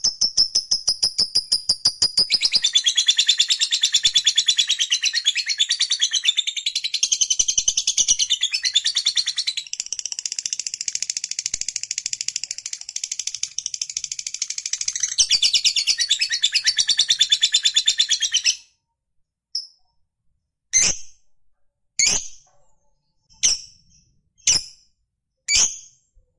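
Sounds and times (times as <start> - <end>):
lovebird chattering song: 0.0 - 18.6.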